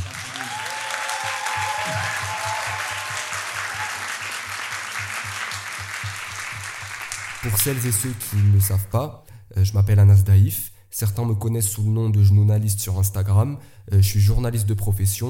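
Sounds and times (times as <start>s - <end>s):
live audience applause: 0.0s - 8.6s
speech: 7.4s - 15.2s.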